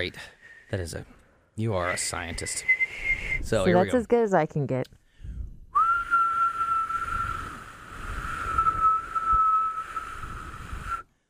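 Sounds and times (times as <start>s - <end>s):
speech: 0.0s - 5.0s
high-pitched lip whistle: 2.5s - 3.5s, 5.8s - 11.1s.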